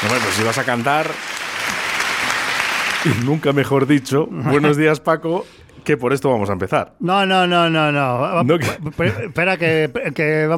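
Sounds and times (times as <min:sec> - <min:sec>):
steady applause from a crowd: 0:00.0 - 0:04.1
speech: 0:00.1 - 0:01.8, 0:03.0 - 0:10.5
laughter: 0:08.4 - 0:10.2.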